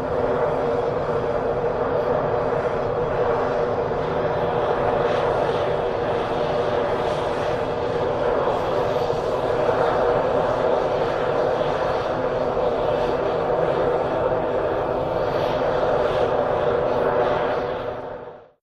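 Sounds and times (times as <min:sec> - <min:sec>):
L101 jet engine idling: 0:00.0 - 0:18.3.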